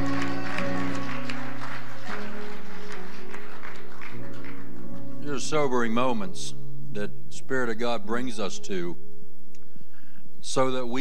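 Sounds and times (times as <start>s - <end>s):
audience clapping: 0.0s - 5.2s
speech: 5.5s - 9.0s, 10.6s - 10.9s.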